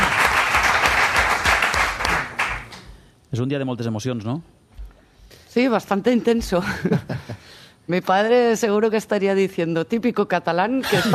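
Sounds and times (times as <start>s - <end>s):
loud audience applause welcoming the daughter of Johan Cruyff: 0.0s - 2.9s
speech: 3.3s - 4.6s, 5.5s - 11.1s.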